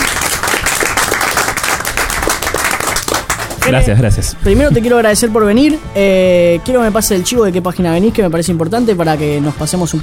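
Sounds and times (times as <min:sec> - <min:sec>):
applause: 0:00.0 - 0:03.9
speech: 0:03.6 - 0:10.0.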